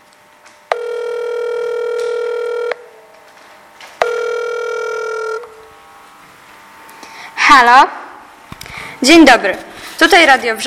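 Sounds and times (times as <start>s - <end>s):
telephone ringing tone: 0.7s - 3.0s, 4.0s - 5.7s
speech: 7.6s - 8.0s, 9.0s - 10.6s.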